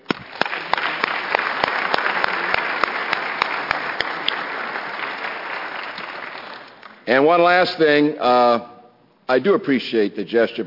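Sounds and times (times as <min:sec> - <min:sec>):
crowd applauding loudly: 0:00.1 - 0:07.0
speech: 0:07.1 - 0:08.7, 0:09.3 - 0:10.6.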